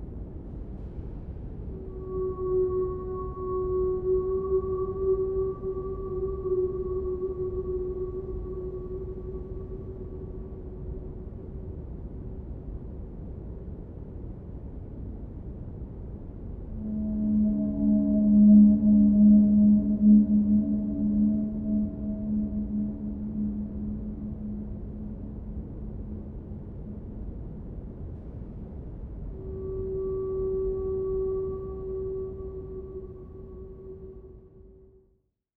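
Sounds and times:
binaural whale sound: 1.7 - 11.6, 16.8 - 27.6, 29.3 - 34.8.

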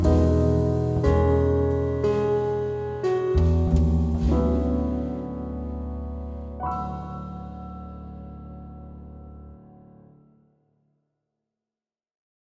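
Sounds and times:
relaxing jazz trio playing: 0.0 - 9.2.

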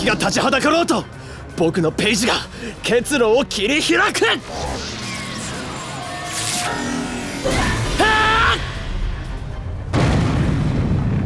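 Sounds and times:
speech: 0.0 - 4.9
ringing warbling sci-fi tone: 4.4 - 9.0
heavy rumbling blast: 7.7 - 11.2
crashing booming burst of a wall being smashed open: 8.6 - 11.2.

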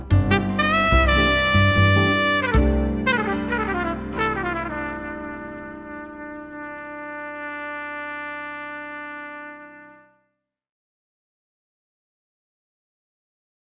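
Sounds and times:
retro office background music: 0.2 - 6.6.

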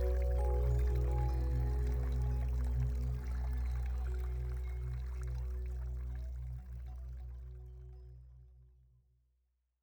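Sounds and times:
Celtic harp relaxation music soundscape: 0.0 - 7.8.

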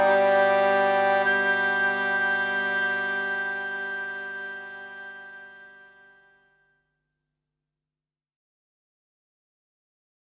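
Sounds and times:
jazz music: 0.0 - 5.2.

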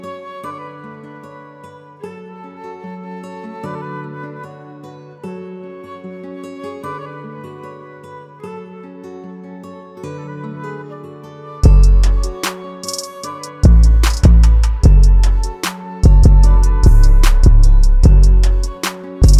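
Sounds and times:
sad ocean-themed music: 11.4 - 19.3.

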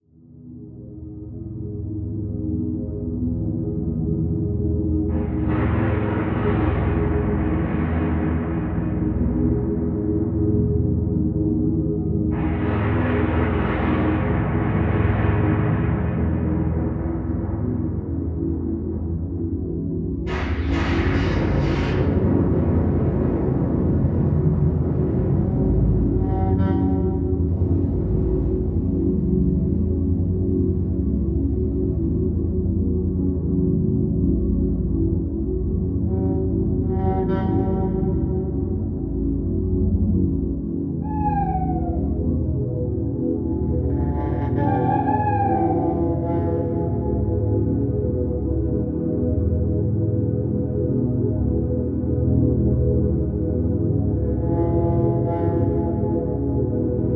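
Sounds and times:
scary Halloween music: 0.2 - 57.1.

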